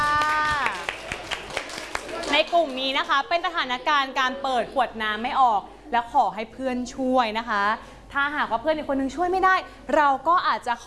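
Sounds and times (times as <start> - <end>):
scattered hand claps: 0.0 - 3.2
speech: 2.4 - 10.8.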